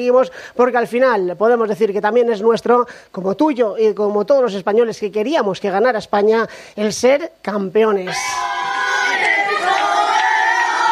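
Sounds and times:
speech: 0.0 - 8.8
crowd chanting a celebration cry: 8.1 - 10.9.

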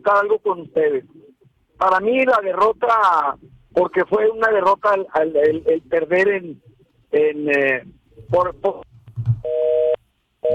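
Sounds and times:
speech: 0.0 - 1.2, 1.8 - 9.8
telephone busy tone after a dropped call: 9.4 - 10.5.

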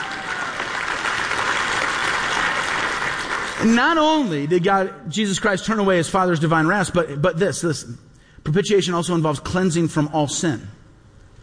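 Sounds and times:
audience clapping: 0.0 - 4.2
speech: 3.6 - 10.8.

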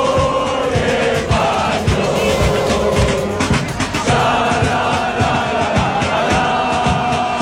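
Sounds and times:
football fans chanting and cheering in the street: 0.0 - 7.4.

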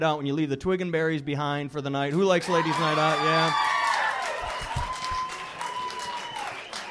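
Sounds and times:
speech: 0.0 - 3.8
audience applause: 2.4 - 6.8
whoops and cheers: 2.4 - 6.8.

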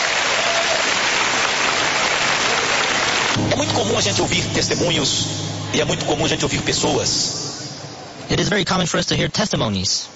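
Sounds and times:
crowd clapping: 0.0 - 3.8
speech: 3.4 - 7.5, 8.3 - 10.1.

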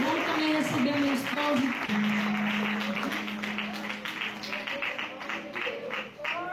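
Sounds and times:
audience applauding: 0.0 - 6.5
low sustained musical tone humming: 1.9 - 4.6.

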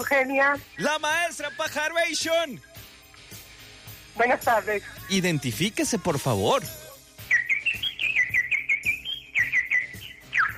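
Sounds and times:
speech: 0.0 - 2.7, 4.2 - 6.8
newly hatched baby birds chirping: 0.0 - 3.0, 7.2 - 10.5.

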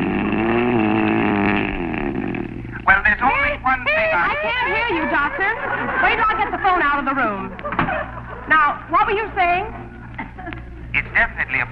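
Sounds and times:
loud roaring snore: 0.0 - 2.7
laughter: 3.9 - 8.8, 9.5 - 11.2
speech: 4.2 - 7.8, 8.5 - 9.8, 11.2 - 11.7.

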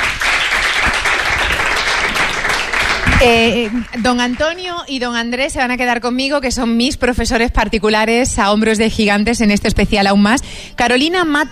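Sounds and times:
audience applause: 0.0 - 4.6
speech: 3.2 - 11.5.

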